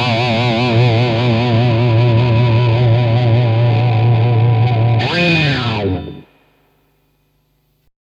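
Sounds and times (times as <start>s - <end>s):
guitar through Morley wah distortion: 0.0s - 6.9s.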